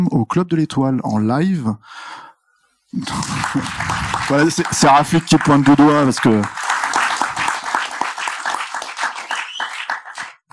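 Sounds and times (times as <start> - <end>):
speech: 0.0 - 2.2, 2.9 - 7.0
laughter: 3.0 - 7.7
audience applause: 3.0 - 10.5.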